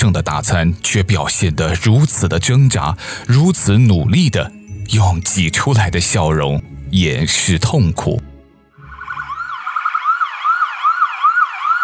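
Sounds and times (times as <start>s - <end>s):
speech: 0.0s - 8.3s
ambulance siren: 8.8s - 11.8s.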